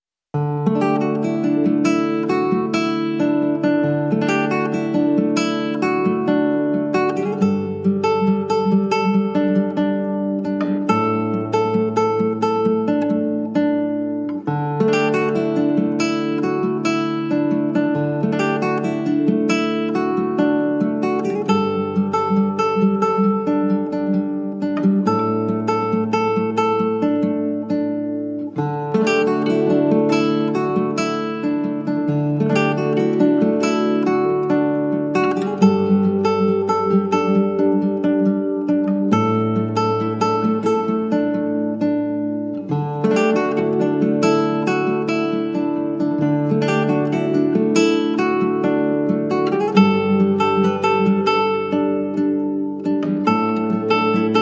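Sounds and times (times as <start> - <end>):
guitar: 0.3 - 54.3.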